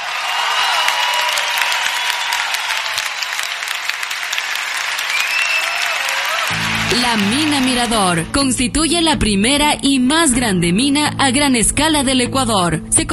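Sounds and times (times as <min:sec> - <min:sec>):
audience applause: 0:00.0 - 0:08.4
speech: 0:07.0 - 0:13.1.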